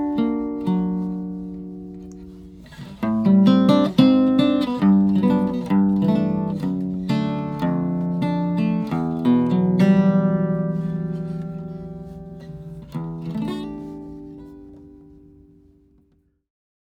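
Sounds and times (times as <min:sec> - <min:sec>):
Gibson L-5 maple and spruce acoustic archtop guitar: 0:00.0 - 0:16.2.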